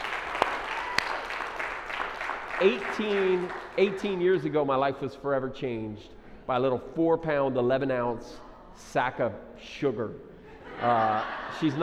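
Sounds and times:
round of applause: 0.0s - 4.2s
speech: 2.6s - 11.8s
laughter: 10.4s - 11.8s.

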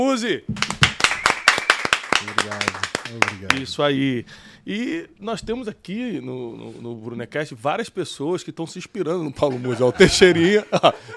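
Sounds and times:
speech: 0.0s - 0.7s, 2.2s - 11.1s
studio applause: 0.6s - 3.8s
laughter: 9.4s - 11.1s.

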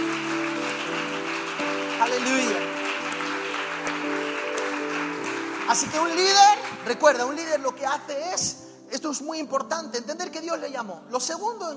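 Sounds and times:
audience applauding: 0.0s - 8.0s
sustained keyboard chords: 0.0s - 11.4s
speech: 2.0s - 2.8s, 5.7s - 11.7s.

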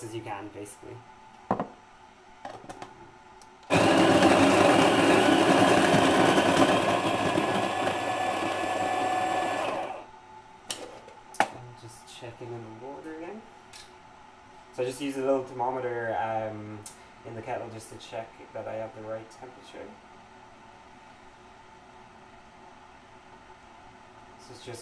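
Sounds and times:
speech: 0.0s - 1.2s, 14.9s - 20.1s, 24.6s - 24.8s
coffee grinder grinding beans: 3.7s - 10.1s.

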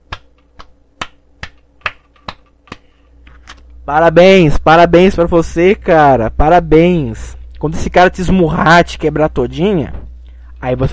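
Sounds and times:
hand clapping: 0.0s - 3.4s
speech: 3.9s - 10.0s, 10.6s - 10.9s.

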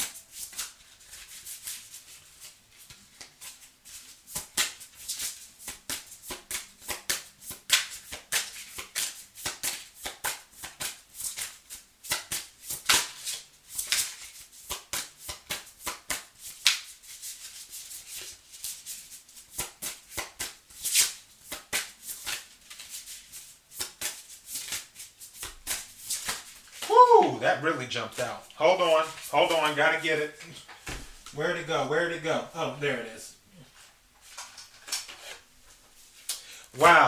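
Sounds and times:
tarot deck being shuffled during a card reading: 0.1s - 27.0s, 33.8s - 36.4s
speech: 27.4s - 30.6s, 31.4s - 33.2s, 36.8s - 37.0s.

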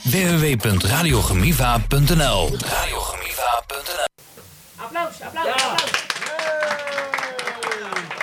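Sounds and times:
speech: 0.1s - 4.1s
audience voices and cheering: 4.8s - 8.2s
audience applause: 5.3s - 8.2s.

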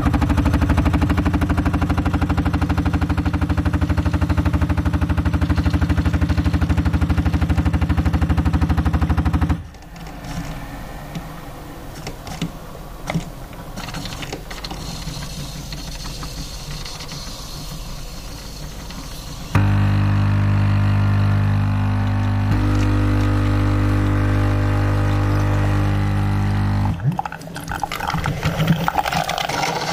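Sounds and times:
coffee machine pump buzzing: 0.1s - 9.3s, 13.8s - 27.0s
coffee trickling: 27.0s - 29.9s.

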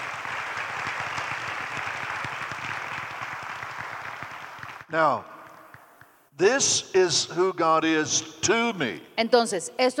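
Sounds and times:
audience applauding: 0.0s - 5.9s
speech: 4.9s - 5.3s, 6.4s - 9.9s.

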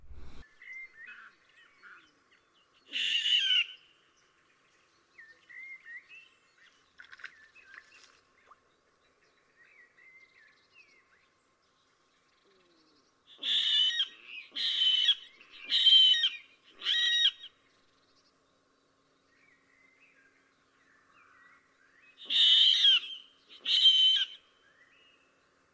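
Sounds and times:
water rail giving harsh high-pitched squealing calls: 13.4s - 17.4s, 22.3s - 24.4s.

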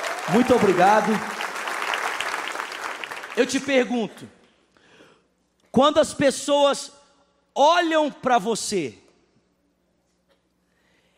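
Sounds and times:
audience applause: 0.0s - 3.9s
speech: 0.3s - 1.3s, 3.4s - 4.4s, 5.7s - 7.0s, 7.6s - 9.0s.

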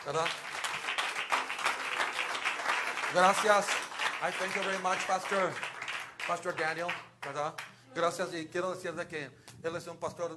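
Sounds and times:
speech: 0.0s - 0.6s, 3.1s - 5.7s, 6.3s - 10.3s
audience clapping: 0.0s - 7.8s.

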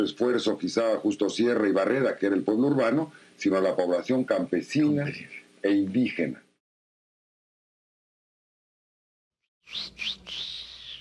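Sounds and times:
speech: 0.0s - 6.4s
people whistling: 9.7s - 10.9s.

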